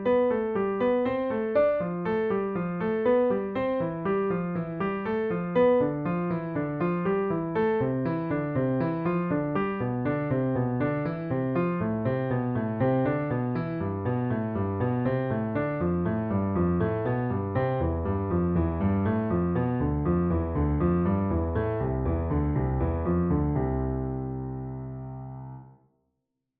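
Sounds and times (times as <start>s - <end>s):
piano finger exercise: 0.0s - 25.6s.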